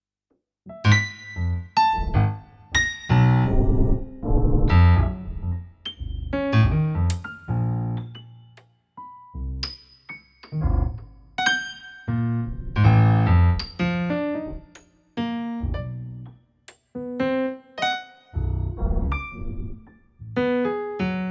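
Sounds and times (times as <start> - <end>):
piano: 0.7 - 21.2.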